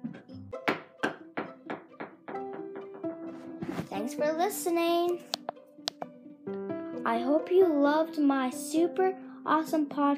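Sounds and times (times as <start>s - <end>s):
Christmas ornament dropped against a door handle: 0.6s - 3.2s
speech: 3.7s - 5.4s, 7.1s - 10.1s.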